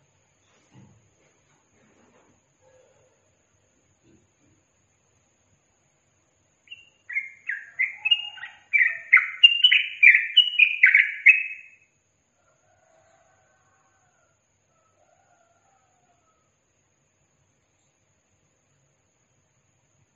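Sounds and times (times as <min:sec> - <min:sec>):
yellow-vented bulbul singing: 0:06.6 - 0:11.9.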